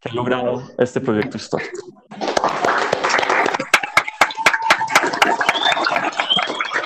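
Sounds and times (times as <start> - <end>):
speech: 0.0 - 2.6
applause over open microphones: 2.2 - 6.8.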